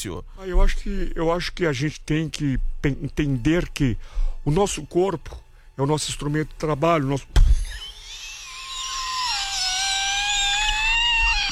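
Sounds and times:
speech: 0.0s - 7.5s
kettle whistling: 7.4s - 11.5s.

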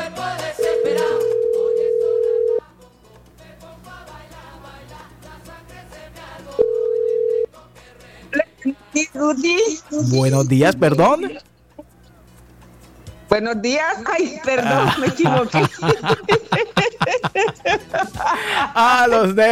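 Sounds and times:
telephone dial tone for a live call: 0.6s - 2.6s, 6.6s - 7.5s
speech: 9.2s - 11.5s, 13.3s - 16.8s, 17.4s - 19.5s
laughter: 14.4s - 19.4s.

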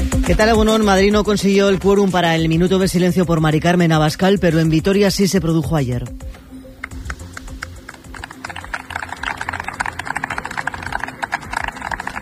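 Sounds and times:
speech: 0.3s - 6.4s
crowd applauding at the end of a gathering in Vitoria: 6.8s - 12.2s.

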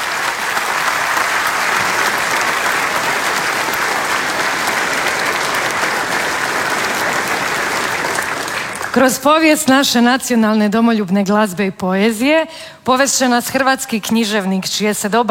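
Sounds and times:
theatre audience applauding at the Croatian National Theatre: 0.0s - 9.2s
speech: 9.0s - 15.2s.

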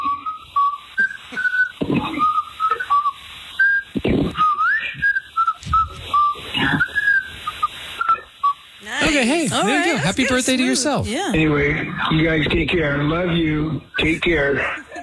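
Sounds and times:
person whistling a tune: 0.0s - 8.6s
laughter: 8.8s - 11.4s, 14.0s - 15.0s
speech: 10.2s - 14.8s.

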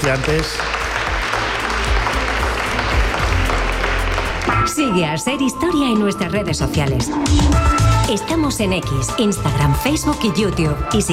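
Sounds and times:
audience applause: 0.0s - 4.6s
speech: 0.1s - 0.8s, 4.4s - 11.1s.

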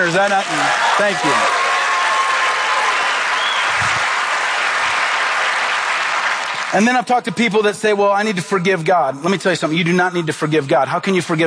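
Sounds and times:
speech: 0.0s - 1.6s, 6.7s - 11.4s
large audience applauding: 0.0s - 6.9s.

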